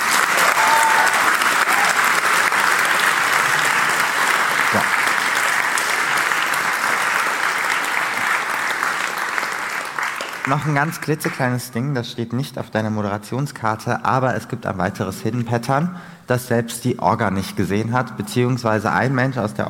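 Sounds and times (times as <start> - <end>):
audience applause: 0.0 - 11.5
speech: 10.5 - 19.6.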